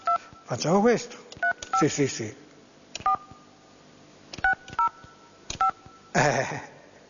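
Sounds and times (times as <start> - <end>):
telephone number being dialed, keypad tones: 0.0 - 0.5, 1.4 - 1.9, 3.0 - 3.4, 4.4 - 6.1
speech: 0.5 - 2.4.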